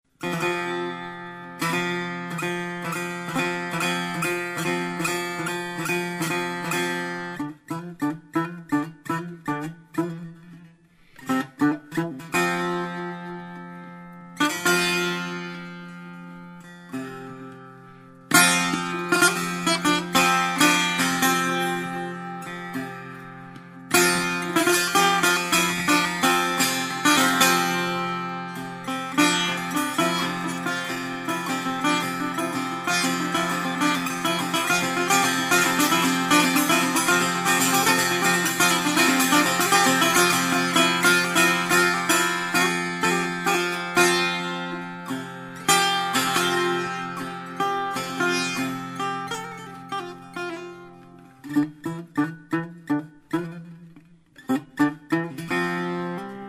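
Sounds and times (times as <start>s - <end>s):
Persian setar playing: 0.1s - 56.4s.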